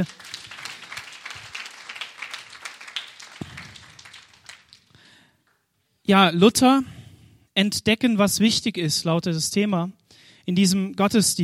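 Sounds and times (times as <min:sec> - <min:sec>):
speech: 0:00.0 - 0:00.4, 0:06.1 - 0:06.9, 0:07.6 - 0:11.4
audience applause: 0:00.0 - 0:05.0.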